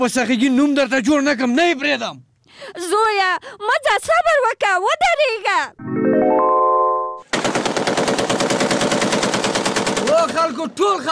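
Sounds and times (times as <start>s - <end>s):
speech: 0.0s - 6.7s, 10.2s - 11.0s
short tonal sound: 5.8s - 7.3s
rapid automatic gunfire: 7.3s - 10.5s.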